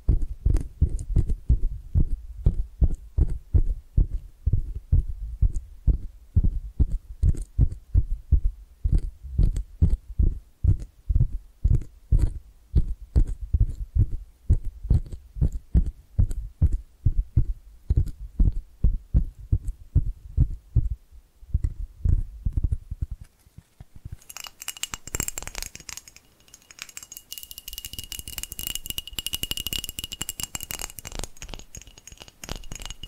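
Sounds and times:
tapping triggers low thumps: 0:00.0 - 0:23.2.

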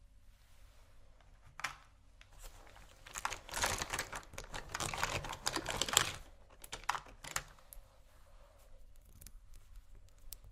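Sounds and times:
rummaging through a makeup bag: 0:01.6 - 0:07.7.

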